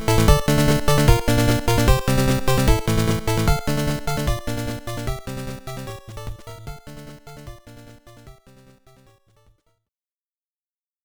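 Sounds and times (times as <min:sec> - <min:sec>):
boss battle background music: 0:00.0 - 0:05.3.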